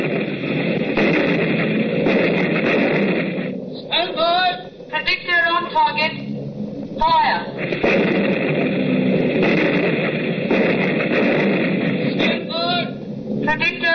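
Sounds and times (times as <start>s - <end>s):
anti-aircraft gun firing: 0.0s - 13.9s.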